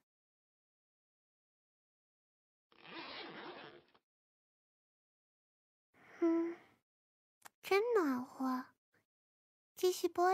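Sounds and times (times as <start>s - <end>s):
trouser zipper being pulled down: 2.7s - 4.0s
speech: 7.7s - 8.7s, 9.8s - 10.3s.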